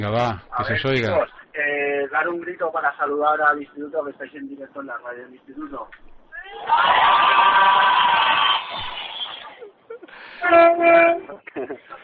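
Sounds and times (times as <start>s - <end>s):
speech: 0.0s - 9.0s, 10.4s - 12.0s
bus horn honking: 10.3s - 11.4s.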